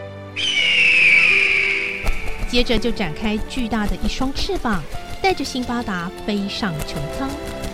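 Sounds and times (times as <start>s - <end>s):
giant eagle's cry: 0.4s - 2.5s
speech: 2.5s - 7.6s.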